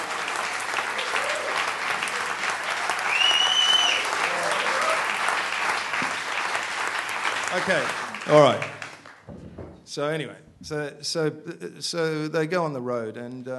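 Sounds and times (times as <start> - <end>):
audience applause: 0.0 - 9.3
speech: 7.6 - 8.8, 10.0 - 13.5.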